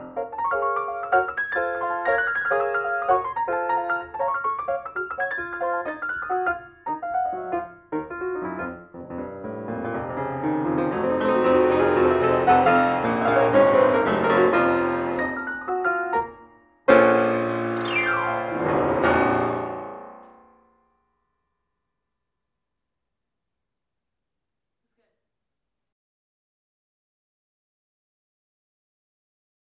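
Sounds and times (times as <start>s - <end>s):
jazz piano solo: 0.0s - 20.3s.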